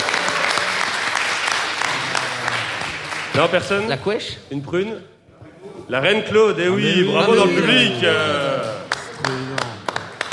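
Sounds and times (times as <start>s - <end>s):
audience applauding: 0.0s - 3.9s, 7.6s - 10.3s
speech: 3.4s - 5.2s, 5.9s - 8.4s.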